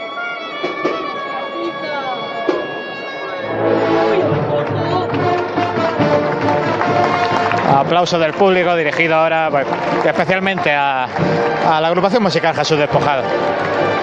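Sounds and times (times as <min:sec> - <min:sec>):
cornet solo during procession: 0:00.0 - 0:07.6
speech: 0:07.7 - 0:14.0.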